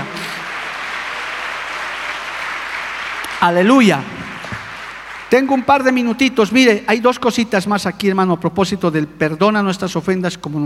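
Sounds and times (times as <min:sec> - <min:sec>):
audience applause: 0:00.0 - 0:06.0
speech: 0:03.4 - 0:04.1, 0:05.3 - 0:10.6.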